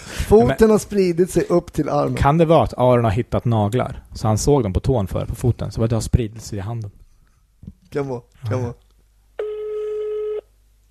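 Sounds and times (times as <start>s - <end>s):
speech: 0.3s - 7.0s, 7.6s - 8.8s
telephone tone as a call is placed: 9.4s - 10.5s.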